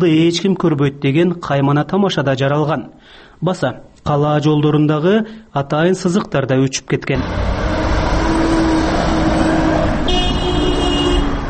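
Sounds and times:
speech: 0.0 - 7.7
car traffic engine hum at intersection of Lenin and Gaparaitiev streets in Osh: 7.2 - 11.4.

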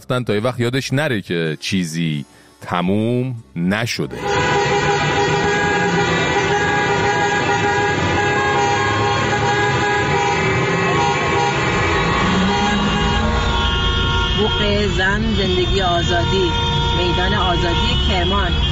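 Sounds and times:
speech: 0.0 - 4.6, 14.6 - 18.7
protesters honking car horns: 4.1 - 18.7.

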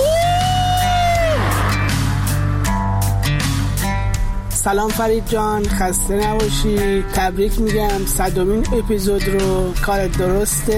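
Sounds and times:
people shouting and whooping: 0.0 - 1.7
long high sustained scream: 0.0 - 1.8
steady low rumble: 0.8 - 4.5
speech: 4.6 - 10.7.

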